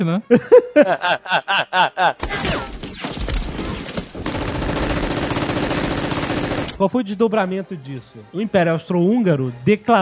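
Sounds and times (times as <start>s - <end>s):
speech: 0.0s - 4.8s, 6.8s - 10.0s
laughter: 0.3s - 2.2s
gunshots: 2.2s - 6.8s.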